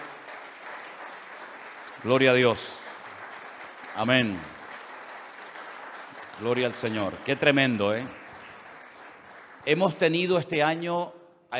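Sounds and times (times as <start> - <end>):
applause: 0.0 - 10.8
speech: 2.0 - 2.8, 4.0 - 4.6, 6.4 - 8.2, 9.6 - 11.5.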